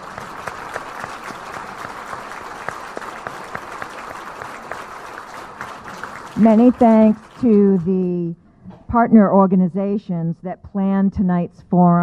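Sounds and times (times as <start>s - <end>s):
audience applause: 0.0s - 8.1s
speech: 6.4s - 12.0s.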